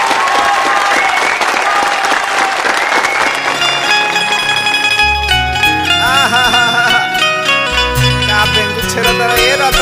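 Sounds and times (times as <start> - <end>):
audience applause: 0.0 - 7.3
laughter: 5.8 - 9.7.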